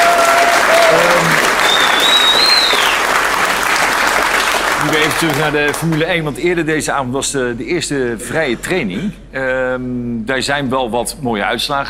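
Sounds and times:
audience applause in a café: 0.0s - 6.1s
speech: 5.2s - 11.8s.

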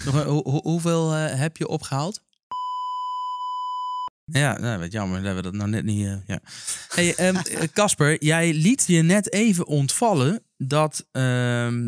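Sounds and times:
speech: 0.0s - 2.2s, 4.3s - 11.8s
steady electronic beep sound effect around one kilohertz: 2.5s - 4.1s
laughter: 6.7s - 7.9s.

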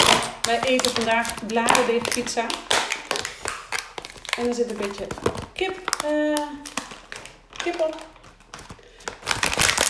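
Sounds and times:
plastic packaging being opened, crinkling: 0.0s - 9.8s
speech: 0.5s - 2.8s, 4.4s - 6.8s, 7.6s - 8.1s.

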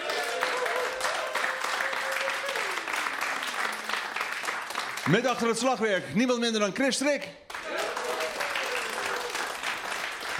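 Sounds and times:
crowd cheers: 0.0s - 4.4s, 7.5s - 10.3s
crowd applause for live band: 0.0s - 5.9s, 7.4s - 10.3s
speech: 5.1s - 7.4s.

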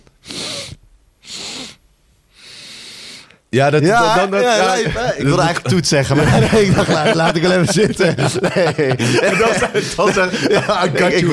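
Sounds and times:
person doing a breathing technique with forceful hissing breaths: 0.2s - 3.4s
speech: 3.6s - 11.3s
laughter: 4.0s - 11.3s.

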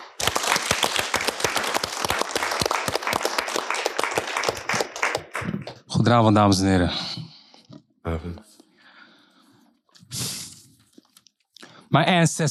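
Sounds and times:
audience applause: 0.0s - 5.7s
speech: 6.0s - 7.2s, 8.2s - 8.5s, 11.9s - 12.4s.

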